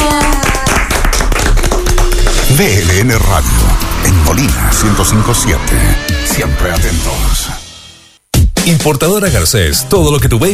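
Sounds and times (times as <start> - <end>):
hands clapping in applause for a school of art and culture: 0.0 - 3.8
sustained tone: 1.6 - 8.2
speech: 2.6 - 3.6, 4.3 - 7.6, 8.6 - 10.5.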